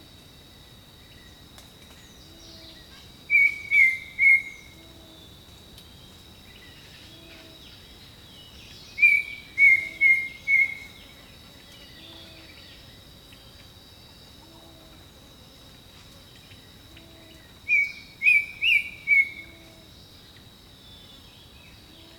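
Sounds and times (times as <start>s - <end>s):
jungle birdsong: 1.9s - 5.3s, 6.0s - 13.7s, 16.3s - 19.7s.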